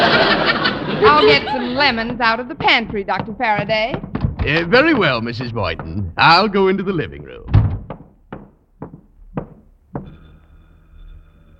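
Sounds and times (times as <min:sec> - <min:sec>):
laughter: 0:00.0 - 0:02.2, 0:04.5 - 0:07.1
knocking on a front door: 0:01.0 - 0:06.3, 0:07.4 - 0:10.2
speech: 0:01.1 - 0:07.6.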